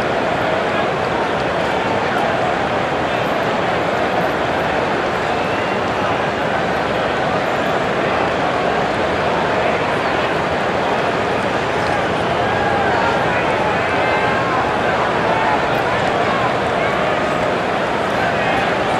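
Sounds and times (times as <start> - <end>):
sports crowd walla ambience: 0.0 - 18.9.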